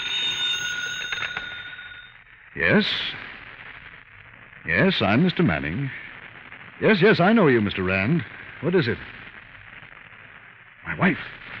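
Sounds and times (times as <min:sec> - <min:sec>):
telephone ringing: 0:00.0 - 0:02.2
speech: 0:02.6 - 0:03.2, 0:04.6 - 0:06.0, 0:06.8 - 0:09.1, 0:11.0 - 0:11.4.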